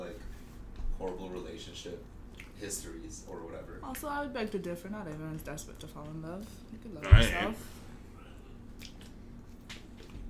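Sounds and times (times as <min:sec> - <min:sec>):
low hum: 0:00.0 - 0:10.2
speech: 0:01.0 - 0:07.8
person chewing chicken wings: 0:08.7 - 0:10.2.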